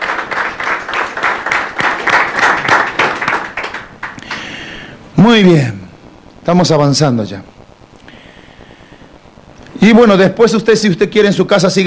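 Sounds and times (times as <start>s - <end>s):
audience applause: 0.0s - 4.8s
speech: 5.2s - 5.8s, 6.4s - 7.6s, 9.8s - 11.8s.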